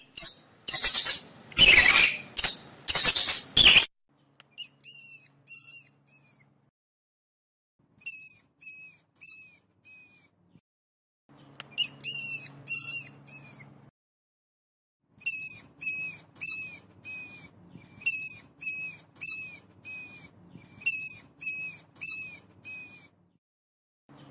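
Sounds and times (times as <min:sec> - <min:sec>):
mouse squeaking: 0:00.0 - 0:03.9, 0:04.5 - 0:06.5, 0:08.0 - 0:10.3, 0:11.6 - 0:13.7, 0:15.2 - 0:23.2.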